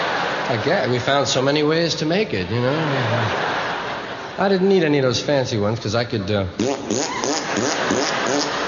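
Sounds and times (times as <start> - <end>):
laughter: 0.0 - 4.7, 7.1 - 8.6
speech: 0.5 - 3.6, 4.4 - 8.6
person blowing a raspberry: 6.6 - 8.6.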